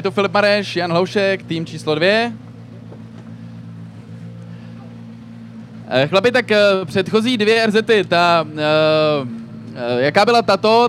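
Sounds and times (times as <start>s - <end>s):
speech: 0.0s - 2.5s, 5.9s - 10.8s
rally car engine droning at the start of a rally stage: 0.0s - 10.8s.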